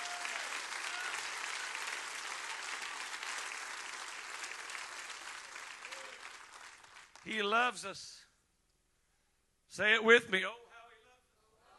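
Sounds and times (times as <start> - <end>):
audience clapping hands: 0.0 - 7.5
speech: 7.2 - 8.2, 9.8 - 10.6.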